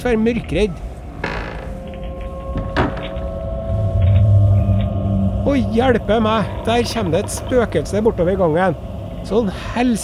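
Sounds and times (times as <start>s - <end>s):
speech: 0.0s - 0.9s, 5.5s - 10.0s
creaking and cracking woodwork: 0.5s - 10.0s.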